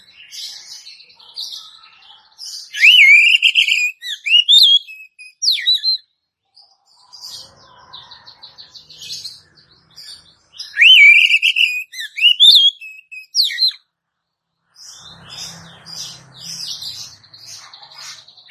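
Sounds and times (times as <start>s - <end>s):
Oriental magpie-robin whistled phrase: 2.7s - 6.0s, 10.6s - 13.8s.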